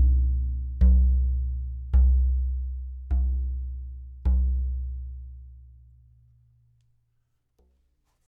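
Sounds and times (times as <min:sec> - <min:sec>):
50 cm bass drum: 0:00.0 - 0:05.7.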